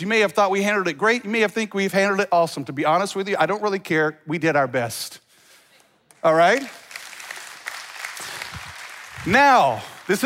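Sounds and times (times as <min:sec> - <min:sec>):
speech: 0:00.0 - 0:05.2, 0:06.2 - 0:06.8, 0:09.2 - 0:10.2
audience clapping: 0:06.1 - 0:10.2.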